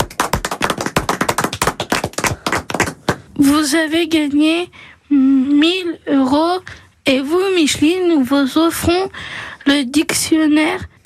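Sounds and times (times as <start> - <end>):
applause: 0.0 - 3.3
speech: 3.4 - 10.9.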